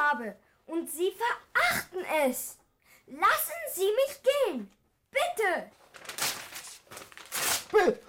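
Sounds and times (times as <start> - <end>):
speech: 0.1 - 6.1, 7.7 - 8.0
sheet music being torn up: 5.8 - 7.9.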